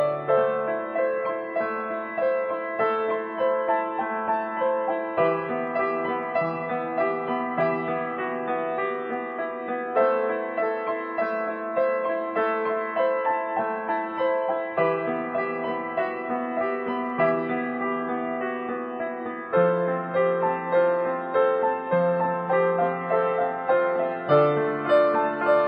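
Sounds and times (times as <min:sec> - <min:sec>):
piano lullaby: 0:00.0 - 0:25.6.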